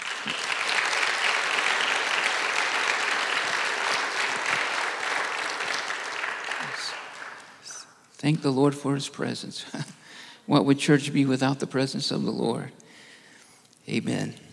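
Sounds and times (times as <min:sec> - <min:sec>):
audience clapping hands: 0:00.0 - 0:07.9
speech: 0:08.2 - 0:12.8, 0:13.9 - 0:14.4.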